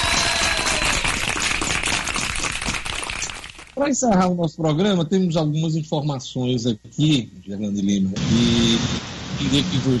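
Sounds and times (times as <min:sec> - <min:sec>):
crowd applauding: 0:00.0 - 0:03.8
speech: 0:03.8 - 0:09.9.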